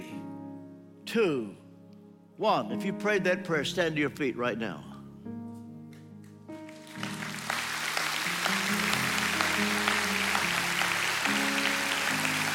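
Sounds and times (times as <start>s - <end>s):
sustained keyboard chords: 0.0s - 12.5s
speech: 1.1s - 1.6s, 2.4s - 4.9s
audience clapping: 6.6s - 12.5s.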